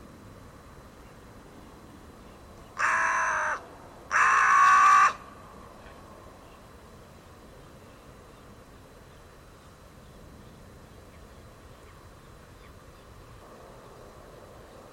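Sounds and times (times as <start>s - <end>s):
bird giving harsh crow-like caws: 2.8s - 5.3s.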